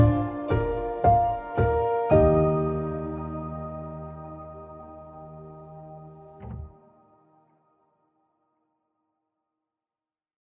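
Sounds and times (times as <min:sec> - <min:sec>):
wedding piano: 0:00.0 - 0:07.8.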